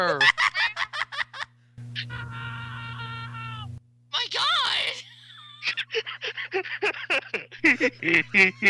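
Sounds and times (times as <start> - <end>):
laughter: 0.1 - 3.7, 5.0 - 8.6
person screaming: 2.1 - 3.7.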